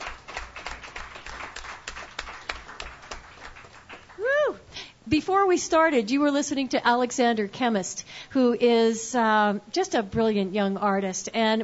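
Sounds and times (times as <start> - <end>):
crowd applause: 0.0 - 4.4
speech: 5.1 - 11.6.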